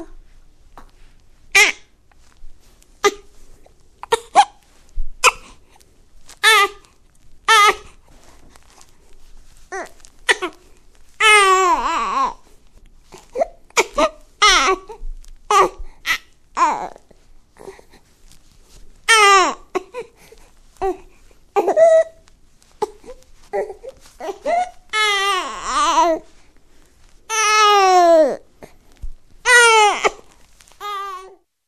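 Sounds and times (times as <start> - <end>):
baby trying to cry ringtone: 1.6 - 1.9, 6.4 - 6.8, 7.5 - 8.0, 9.7 - 10.6, 11.2 - 12.5, 13.4 - 17.8, 19.1 - 20.1, 20.8 - 26.3, 27.3 - 28.4, 29.5 - 30.3, 30.8 - 31.5.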